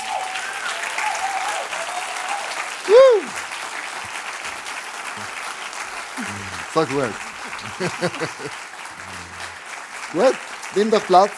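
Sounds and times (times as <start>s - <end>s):
rising-and-falling whistle or cheer: 0.0s - 3.4s
audience applause: 0.0s - 11.3s
laughter: 2.9s - 3.4s, 5.2s - 10.4s
speech: 6.8s - 8.6s, 10.1s - 11.3s.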